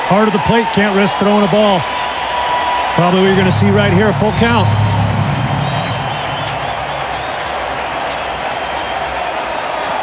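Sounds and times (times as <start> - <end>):
speech: 0.1 - 2.2, 3.0 - 5.0
stadium crowd cheering: 2.3 - 10.0.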